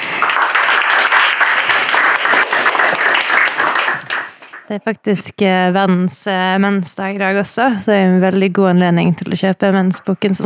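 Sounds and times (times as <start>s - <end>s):
crowd applauding: 0.0s - 4.7s
speech: 4.7s - 10.4s.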